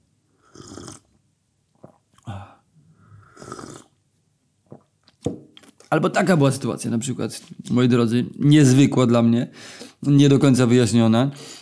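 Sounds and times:
person sipping green tea: 0:00.4 - 0:04.0, 0:04.6 - 0:05.9
speech: 0:05.9 - 0:11.5.

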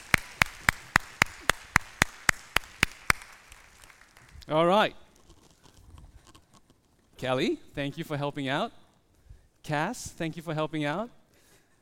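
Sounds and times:
audience rhythmic hand claps: 0:00.0 - 0:04.4
speech: 0:04.5 - 0:05.0, 0:07.2 - 0:08.8, 0:09.6 - 0:11.2.

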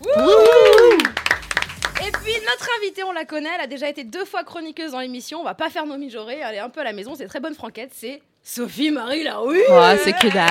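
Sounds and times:
applause: 0:00.0 - 0:02.8, 0:10.0 - 0:10.4
speech: 0:02.5 - 0:10.4.

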